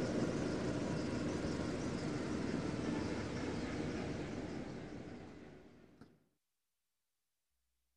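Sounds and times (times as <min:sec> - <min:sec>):
helicopter landing: 0:00.0 - 0:05.5.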